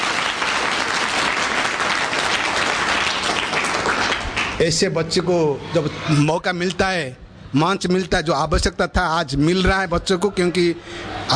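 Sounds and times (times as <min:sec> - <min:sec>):
audience clapping: 0:00.0 - 0:04.8
speech: 0:04.6 - 0:11.3.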